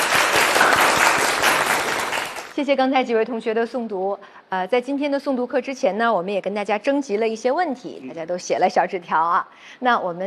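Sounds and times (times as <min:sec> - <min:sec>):
classroom applause for a student after a recitation: 0:00.0 - 0:02.6
speech: 0:02.6 - 0:10.2.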